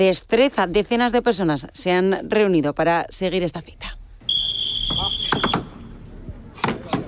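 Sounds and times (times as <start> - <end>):
speech: 0.0 - 4.0
whistle blast starting a wood-chopping championship: 4.3 - 5.8.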